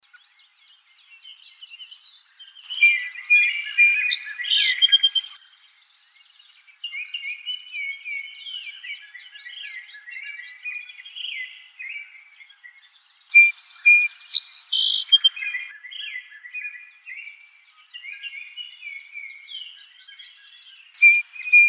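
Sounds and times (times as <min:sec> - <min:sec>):
Song Sparrow song: 0:00.0 - 0:21.6.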